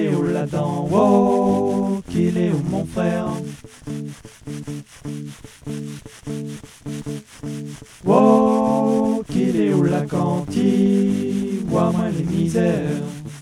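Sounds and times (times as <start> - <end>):
voices singing a refrain: 0.0 - 3.5, 8.0 - 13.3.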